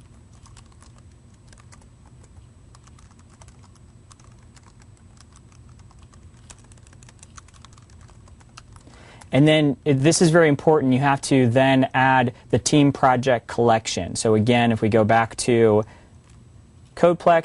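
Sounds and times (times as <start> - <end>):
typing a web address on a computer keyboard: 0.0 - 9.3
speech: 9.3 - 16.0, 17.0 - 17.4.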